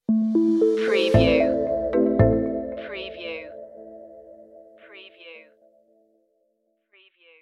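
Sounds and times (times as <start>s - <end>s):
musical stinger: 0.1s - 4.7s.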